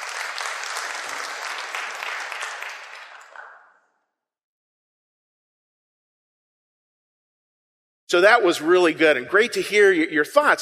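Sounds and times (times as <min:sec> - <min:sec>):
crowd applauding: 0:00.0 - 0:03.9
speech: 0:08.1 - 0:10.5.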